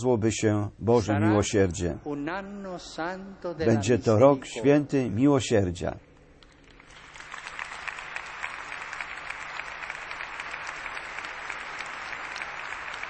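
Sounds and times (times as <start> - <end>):
speech: 0.0 - 6.1
large audience applause: 6.8 - 13.0.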